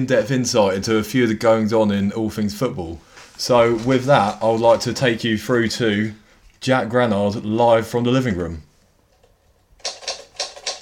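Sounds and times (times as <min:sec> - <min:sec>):
speech: 0:00.0 - 0:08.7
typewriter typing: 0:09.8 - 0:10.8.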